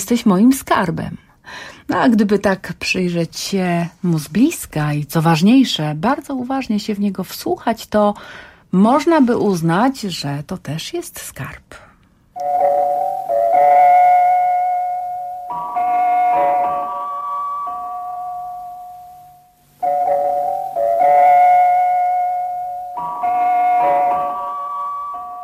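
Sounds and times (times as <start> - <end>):
speech: 0.1 - 11.8, 12.4 - 13.8
interval signal of an early Polish radio station: 12.4 - 25.4.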